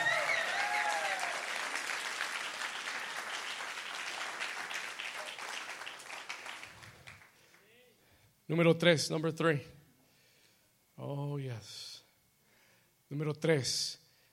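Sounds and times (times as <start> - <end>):
audience applause: 0.0 - 7.4
speech: 8.5 - 9.8, 13.4 - 14.0.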